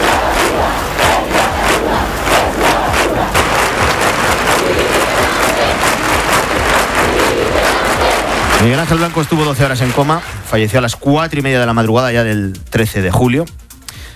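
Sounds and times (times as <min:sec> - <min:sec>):
large crowd shouting and chanting at protest vigil: 0:00.0 - 0:10.9
people clapping at protest vigil: 0:00.0 - 0:11.0
speech: 0:08.6 - 0:13.6.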